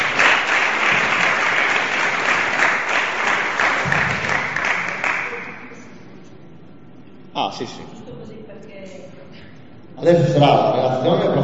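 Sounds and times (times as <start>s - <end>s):
audience applause: 0.0s - 5.7s
speech: 7.6s - 8.0s, 10.0s - 11.4s.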